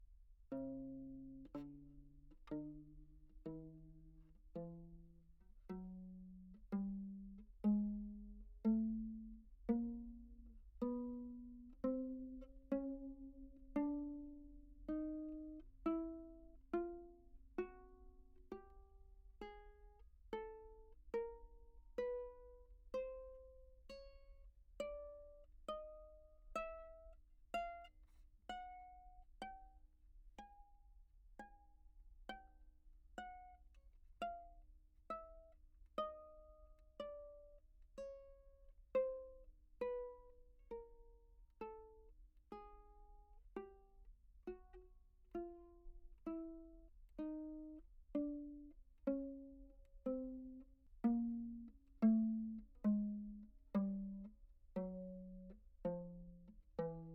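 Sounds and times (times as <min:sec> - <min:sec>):
pizzicato chromatic notes on treble viol: 0:00.0 - 0:29.8, 0:33.2 - 0:57.1.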